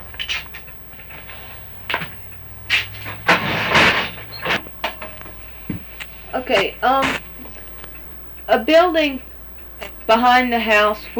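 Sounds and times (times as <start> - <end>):
door being shut: 1.2 - 5.8
speech: 6.4 - 7.2, 8.5 - 9.3, 10.1 - 11.1.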